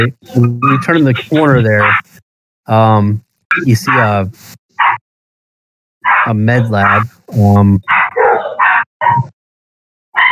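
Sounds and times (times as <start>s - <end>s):
speech: 0.0s - 5.0s, 6.2s - 8.0s, 9.0s - 9.4s
dogs barking in a video game: 1.8s - 2.0s, 3.8s - 4.2s, 4.8s - 5.0s, 6.0s - 7.1s, 7.8s - 9.4s, 10.1s - 10.3s.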